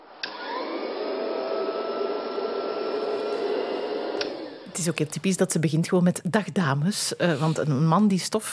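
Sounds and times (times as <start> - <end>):
vintage vacuum cleaner running: 0.0 - 5.2
vacuum cleaner switch click: 0.2 - 0.6, 4.2 - 4.4
speech: 4.8 - 8.5.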